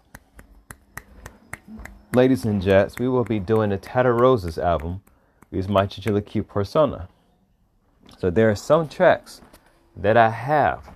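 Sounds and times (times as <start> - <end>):
finger snapping: 0.0 - 6.3
speech: 1.7 - 7.2, 8.1 - 10.9.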